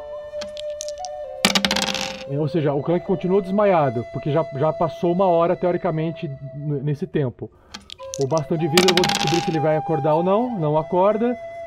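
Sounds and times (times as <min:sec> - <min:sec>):
rolling a four-sided die: 0:00.4 - 0:02.3, 0:07.8 - 0:09.6
speech: 0:02.3 - 0:11.5.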